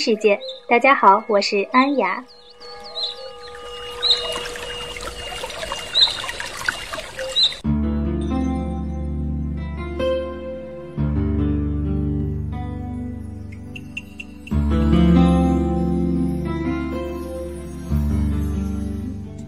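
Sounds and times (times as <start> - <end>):
speech: 0.0 - 2.8
rainforest birds and insects chirping: 0.0 - 7.7, 12.9 - 16.4
low sustained music chords: 0.0 - 19.4.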